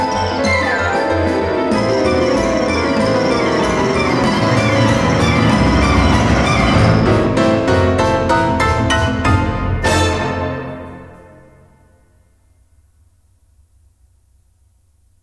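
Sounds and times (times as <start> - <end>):
Romanian folk music variation: 0.0 - 11.9.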